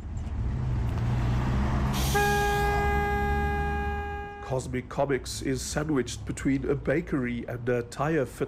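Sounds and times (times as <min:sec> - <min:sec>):
heavy traffic engine rumble on a busy Johannesburg route: 0:00.0 - 0:08.4
vehicle horn blast: 0:02.0 - 0:04.6
speech: 0:04.5 - 0:08.4.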